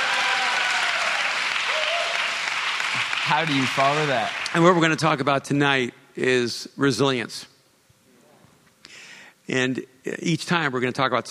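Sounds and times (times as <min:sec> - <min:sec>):
audience applause: 0:00.0 - 0:04.8
speech: 0:03.0 - 0:07.5, 0:09.5 - 0:11.2.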